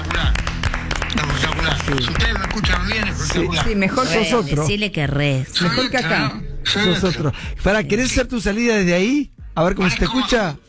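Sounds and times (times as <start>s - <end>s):
group applauding: 0.0s - 4.1s
speech: 1.9s - 10.6s.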